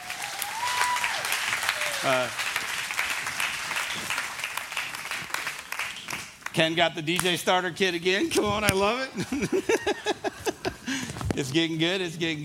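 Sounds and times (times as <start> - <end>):
round of applause: 0.0 - 6.7
speech: 2.0 - 2.4, 6.6 - 10.4, 11.4 - 12.4
laughter: 9.1 - 11.1.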